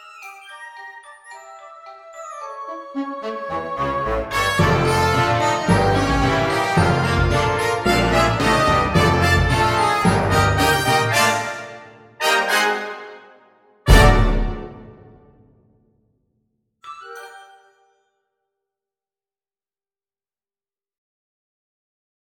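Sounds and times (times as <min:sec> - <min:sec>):
little polka band playing: 0:03.2 - 0:12.8, 0:13.9 - 0:15.1.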